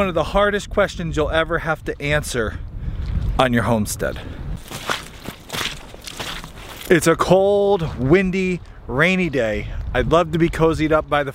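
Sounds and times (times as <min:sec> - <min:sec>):
speech: 0:00.0 - 0:02.7, 0:03.4 - 0:04.9, 0:06.9 - 0:11.3
footsteps walking through mud at an off-grid homestead: 0:04.0 - 0:09.9.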